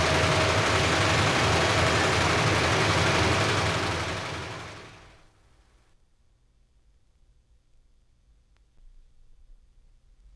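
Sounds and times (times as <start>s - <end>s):
newspaper printing presses running at high speed: 0.0s - 5.2s.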